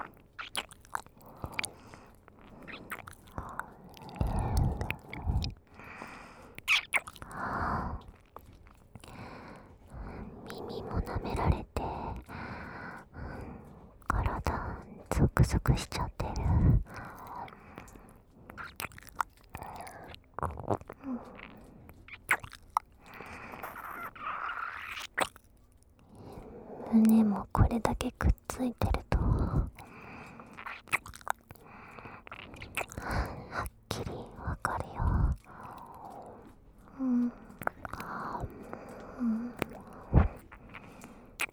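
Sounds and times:
ear licking on a train: 0.0s - 41.5s
person whispering on a train: 2.6s - 5.6s, 10.0s - 12.3s, 12.9s - 17.7s, 26.3s - 30.0s, 32.3s - 40.8s.

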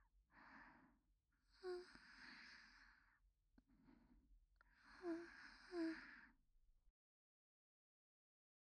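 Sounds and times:
woman breathing calmly in sleep beside her boyfriend: 0.3s - 6.4s.

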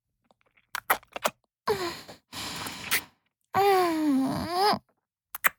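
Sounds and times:
kissing: 0.7s - 1.4s, 2.6s - 3.1s, 5.3s - 5.5s
person breathing after orgasm: 1.7s - 3.7s.

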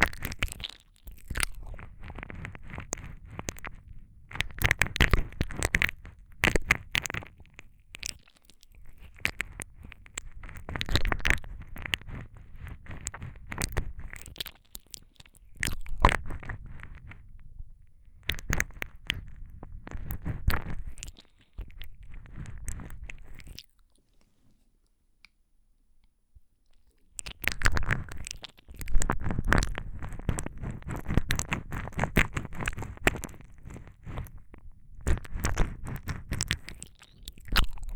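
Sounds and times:
ASMR ear licking sounds: 0.0s - 17.2s, 18.2s - 24.1s, 27.2s - 37.9s.

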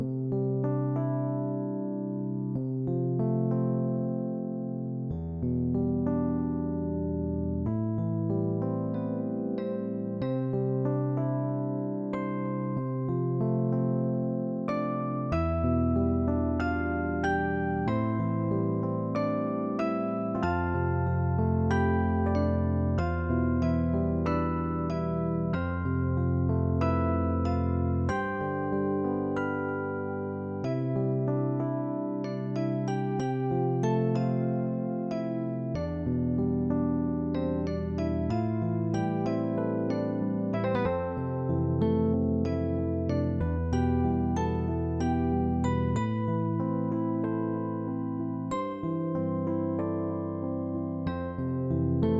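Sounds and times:
music: 0.0s - 52.1s.

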